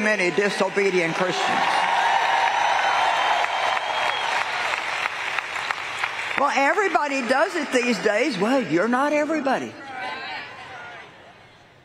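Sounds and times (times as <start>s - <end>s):
speech: 0.0s - 1.9s, 6.4s - 9.8s
audience applause: 0.0s - 8.9s.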